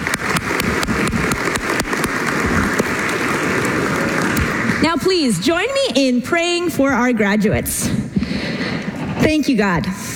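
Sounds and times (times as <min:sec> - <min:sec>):
audience applause for graduating seniors: 0:00.0 - 0:05.1
speech: 0:05.0 - 0:08.4, 0:09.3 - 0:10.1.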